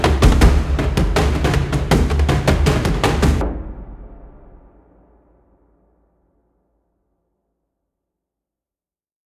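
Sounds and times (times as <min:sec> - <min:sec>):
battle drums music: 0:00.0 - 0:03.8.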